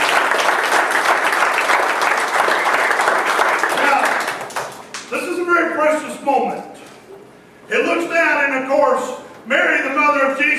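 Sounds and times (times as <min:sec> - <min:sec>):
audience applause: 0:00.0 - 0:05.0
speech: 0:06.3 - 0:06.8, 0:07.7 - 0:10.5.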